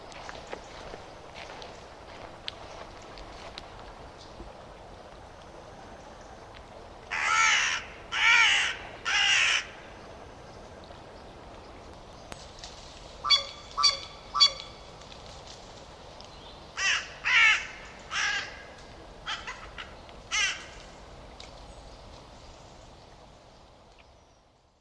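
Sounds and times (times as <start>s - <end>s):
faint background hiss: 0.0s - 24.8s
bird calling with rough raspy caws: 7.1s - 9.8s, 13.2s - 14.8s, 16.8s - 20.8s.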